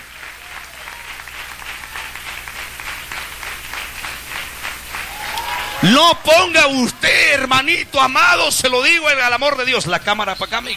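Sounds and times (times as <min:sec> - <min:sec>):
audience clapping hands: 0:00.0 - 0:08.6
speech: 0:05.8 - 0:10.7.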